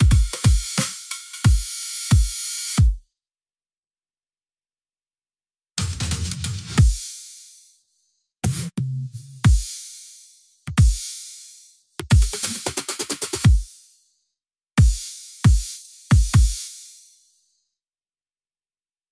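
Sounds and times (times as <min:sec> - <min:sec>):
drums: 0:00.0 - 0:03.0, 0:05.8 - 0:07.4, 0:09.4 - 0:09.8, 0:10.7 - 0:11.1, 0:12.0 - 0:13.7, 0:14.8 - 0:16.8.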